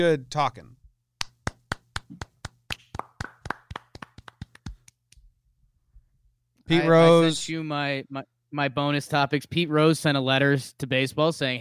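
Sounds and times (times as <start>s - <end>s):
speech: 0.0s - 0.8s, 6.7s - 11.5s
hand clapping: 1.2s - 5.3s.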